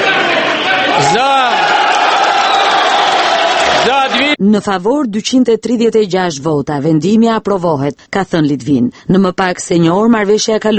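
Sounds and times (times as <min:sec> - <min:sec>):
applause and voices in the Ukrainian parliament chamber: 0:00.0 - 0:04.4
speech: 0:03.9 - 0:10.7.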